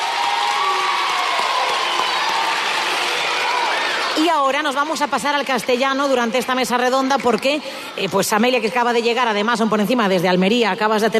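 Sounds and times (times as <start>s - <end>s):
audience applause and cheering: 0.0s - 6.9s
speech: 4.3s - 11.1s.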